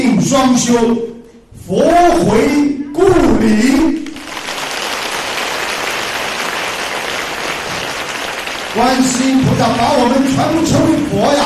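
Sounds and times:
speech: 0.4 - 4.0, 8.8 - 11.4
audience applause: 4.1 - 11.4.

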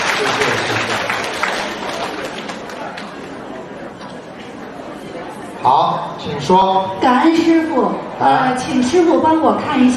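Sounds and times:
audience applause: 0.0 - 3.2
speech: 5.6 - 9.9.

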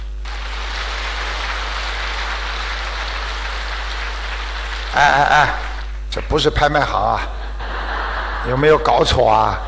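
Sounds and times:
applause in the auction hall: 0.2 - 6.0
speech: 5.0 - 7.4, 8.4 - 9.6
laughter: 7.2 - 9.6.

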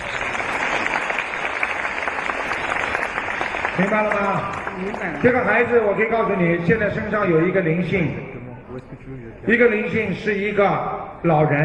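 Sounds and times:
applause: 0.0 - 5.9
speech: 3.8 - 8.2, 8.8 - 11.6.

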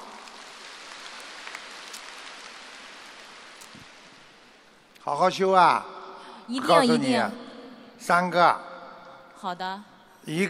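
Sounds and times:
applause: 0.0 - 4.6
speech: 5.0 - 5.9, 6.5 - 7.4, 8.0 - 8.7, 9.4 - 10.4.

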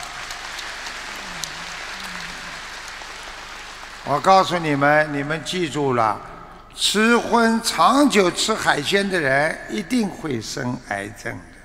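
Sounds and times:
audience applause: 0.0 - 5.5
speech: 4.0 - 11.5.

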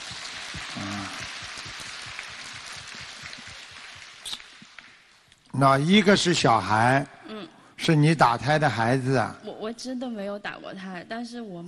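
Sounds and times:
audience applause: 0.0 - 5.1
speech: 5.6 - 7.2, 7.8 - 11.6.

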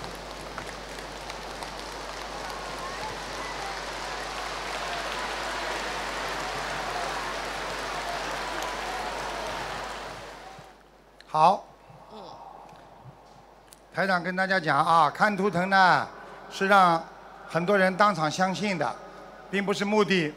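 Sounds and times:
audience applause: 0.0 - 10.8
speech: 11.3 - 11.7, 14.0 - 20.3.

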